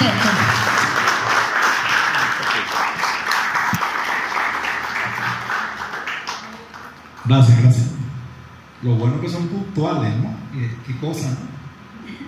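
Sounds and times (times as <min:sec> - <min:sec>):
audience applause: 0:00.0 - 0:07.2
speech: 0:07.3 - 0:08.0, 0:08.8 - 0:11.5.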